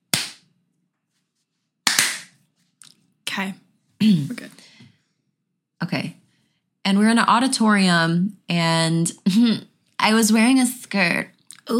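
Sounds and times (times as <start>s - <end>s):
single hand clap: 0.1s - 0.5s, 1.9s - 2.4s
speech: 3.4s - 4.8s, 6.9s - 11.7s.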